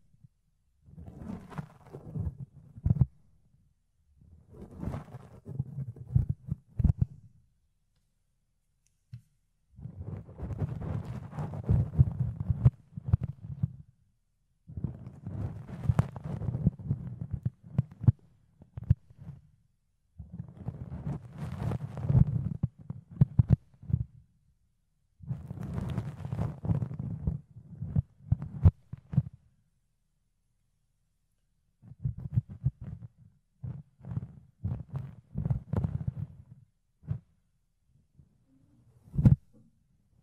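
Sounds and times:
fluffy ear cleaning scratching and rubbing: 0:01.0 - 0:03.1, 0:04.5 - 0:07.1, 0:09.8 - 0:13.8, 0:14.7 - 0:18.1, 0:20.3 - 0:23.5, 0:25.2 - 0:29.1, 0:32.2 - 0:37.2.

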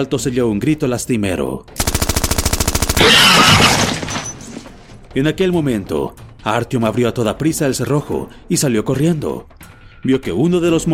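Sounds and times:
speech: 0:00.0 - 0:01.9, 0:03.0 - 0:04.0, 0:05.2 - 0:10.9
machine gun fire: 0:01.8 - 0:04.3.

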